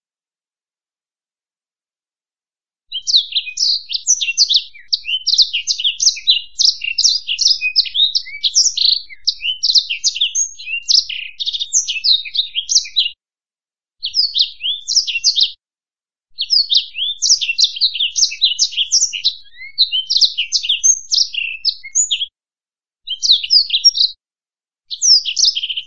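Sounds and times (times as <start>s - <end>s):
black-throated canary singing: 2.9s - 13.2s, 14.0s - 15.6s, 16.4s - 22.3s, 23.1s - 24.2s, 24.9s - 25.8s.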